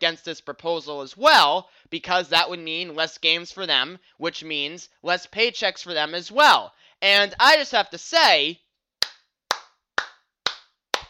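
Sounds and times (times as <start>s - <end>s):
speech: 0.0s - 8.6s
hand clapping: 9.0s - 11.0s.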